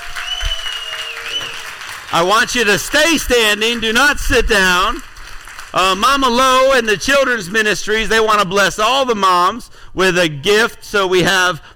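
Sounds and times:
round of applause: 0.0s - 6.4s
speech: 2.1s - 5.1s, 5.7s - 11.7s.

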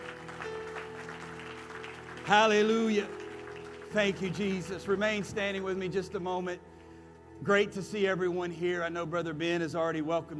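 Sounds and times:
audience clapping hands: 0.0s - 5.4s
speech: 2.3s - 3.2s, 3.9s - 6.7s, 7.4s - 10.3s.

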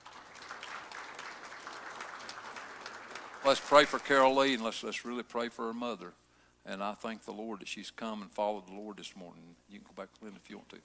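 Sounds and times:
audience applause: 0.0s - 4.6s
speech: 3.4s - 10.8s.

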